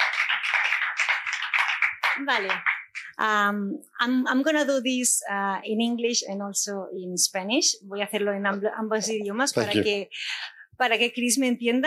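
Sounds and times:
audience applause: 0.0 - 3.2
speech: 2.2 - 11.8.

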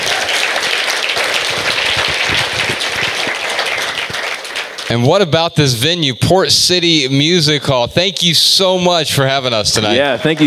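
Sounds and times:
audience round of applause: 0.0 - 5.1
speech: 4.9 - 10.4.

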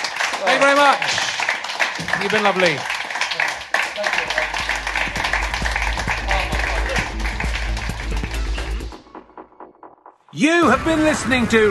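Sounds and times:
audience applause: 0.0 - 9.0
speech: 0.4 - 1.2, 2.0 - 2.9, 4.0 - 4.6, 10.4 - 11.7.

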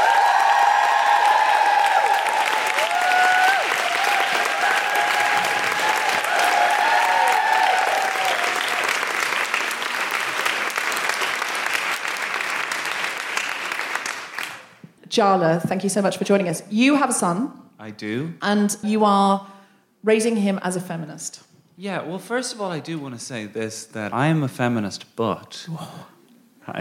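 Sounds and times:
audience applause as a guest is welcomed on stage: 0.0 - 14.8
speech: 15.2 - 26.1, 26.7 - 26.8.

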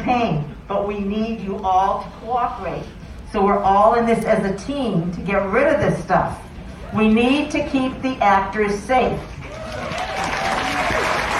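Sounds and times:
speech: 0.0 - 10.0
audience clapping: 9.4 - 11.3.

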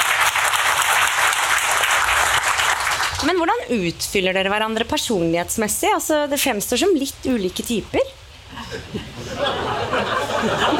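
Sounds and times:
audience applause: 0.0 - 3.3
speech: 3.2 - 9.7
laughter: 8.5 - 10.7.

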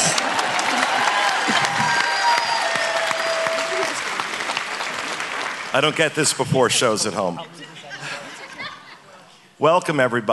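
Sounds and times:
audience applause: 0.0 - 6.4
speech: 5.7 - 7.8, 9.6 - 10.3
laughter: 7.4 - 9.3.

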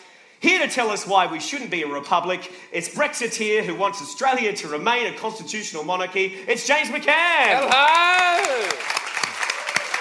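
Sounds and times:
speech: 0.5 - 9.0
audience clapping: 7.2 - 9.9.

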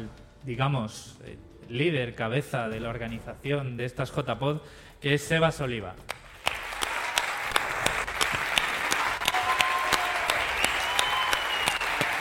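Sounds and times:
speech: 0.0 - 6.2
audience applause: 6.4 - 12.1.

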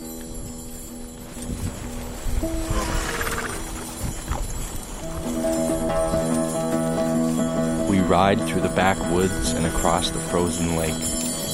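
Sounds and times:
sleigh rustling and creaking: 0.0 - 6.9
horse hooves clip-clopping pulling an antique sleigh: 0.0 - 11.5
speech: 8.1 - 11.2.

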